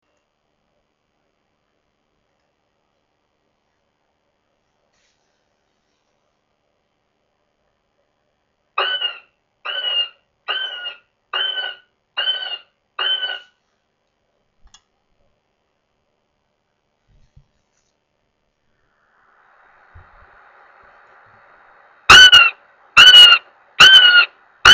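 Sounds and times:
Northern goshawk wailing with loud drawn-out nasal squeals: 8.8 - 13.5, 20.3 - 24.7.

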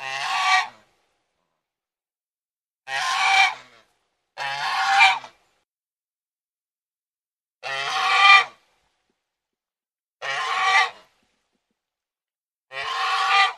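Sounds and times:
domestic goose giving rasping honks: 0.0 - 0.8, 2.9 - 3.8, 4.4 - 5.4, 7.6 - 8.6, 10.2 - 11.1, 12.7 - 13.5.

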